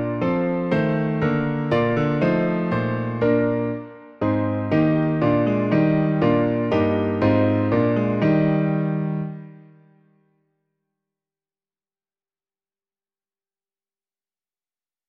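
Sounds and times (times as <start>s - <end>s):
piano piece: 0.0s - 10.1s.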